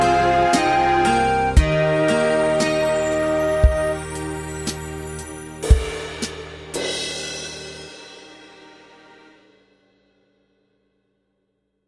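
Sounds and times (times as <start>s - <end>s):
hymn tune practice track in E flat: 0.0s - 9.0s.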